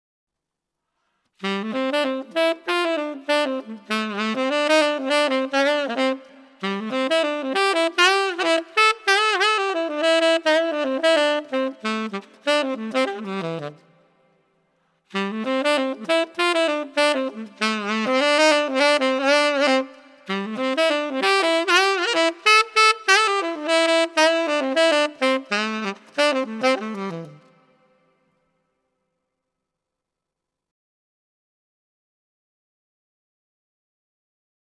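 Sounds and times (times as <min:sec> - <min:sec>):
saxophone: 0:01.4 - 0:28.6.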